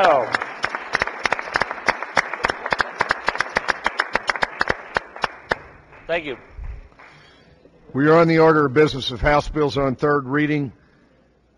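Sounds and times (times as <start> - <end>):
room of people applauding: 0.0 - 7.4
speech: 6.1 - 6.6, 7.9 - 10.8.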